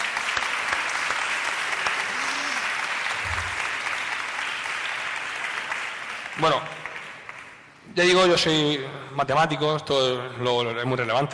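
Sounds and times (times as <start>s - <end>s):
audience applause: 0.0s - 7.6s
speech: 6.4s - 6.8s, 7.9s - 11.3s.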